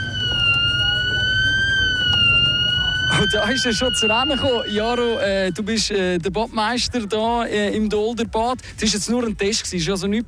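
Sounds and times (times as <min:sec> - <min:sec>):
swimming pool emergency alarm: 0:00.0 - 0:05.8
speech: 0:03.2 - 0:10.2.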